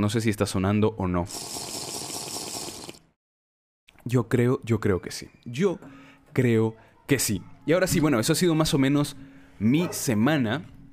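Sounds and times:
speech: 0:00.0 - 0:01.8, 0:04.1 - 0:10.8
noisy slurping sip of hot coffee: 0:01.3 - 0:03.1.

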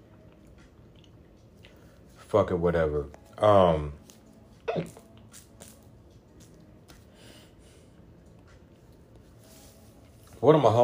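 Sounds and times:
speech: 0:02.3 - 0:04.0, 0:04.7 - 0:05.0, 0:10.4 - 0:10.8
person hiccuping: 0:04.6 - 0:05.0.

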